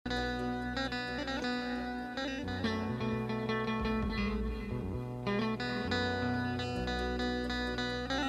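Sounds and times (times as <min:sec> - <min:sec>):
music: 0:00.0 - 0:08.2.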